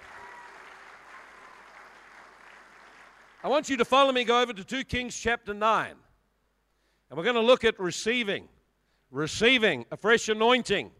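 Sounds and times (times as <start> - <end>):
audience clapping: 0.0 - 3.8
speech: 3.4 - 6.0, 7.1 - 10.9.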